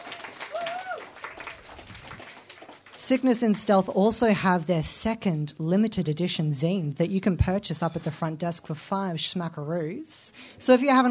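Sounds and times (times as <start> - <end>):
audience applause: 0.0 - 3.0
speech: 3.1 - 11.0.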